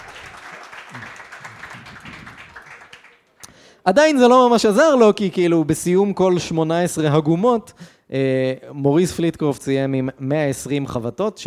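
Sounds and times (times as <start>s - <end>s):
applause: 0.0s - 3.5s
speech: 3.9s - 11.4s.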